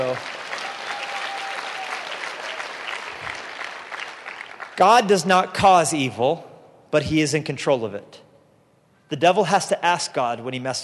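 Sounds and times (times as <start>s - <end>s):
speech: 0.0s - 0.4s, 4.8s - 8.2s, 9.1s - 10.8s
audience clapping: 0.0s - 5.1s.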